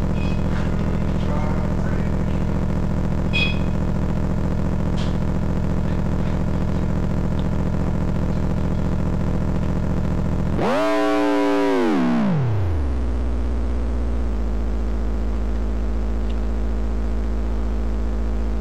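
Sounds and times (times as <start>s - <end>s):
car engine idling in neutral: 0.0s - 18.5s.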